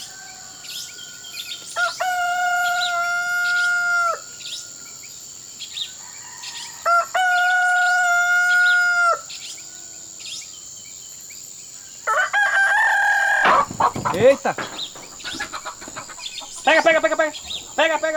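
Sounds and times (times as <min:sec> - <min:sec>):
rooster crowing: 0:00.0 - 0:04.3, 0:06.0 - 0:09.4, 0:12.0 - 0:17.8
high insect whine: 0:00.0 - 0:18.1
speech: 0:14.2 - 0:14.7, 0:16.7 - 0:18.1.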